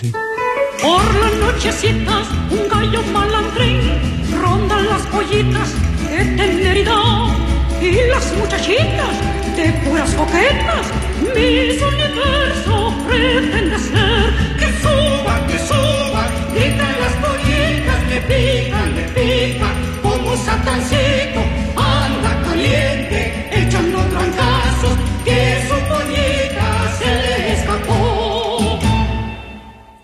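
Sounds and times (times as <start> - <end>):
Latin chanson: 0.0 - 30.0.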